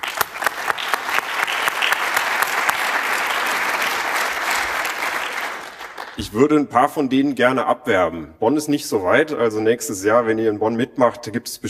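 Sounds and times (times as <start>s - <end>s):
crowd applause: 0.0s - 6.2s
speech: 6.2s - 11.6s.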